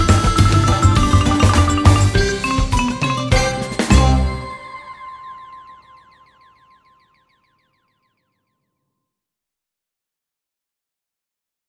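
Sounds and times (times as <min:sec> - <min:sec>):
koto: 0:00.0 - 0:05.4.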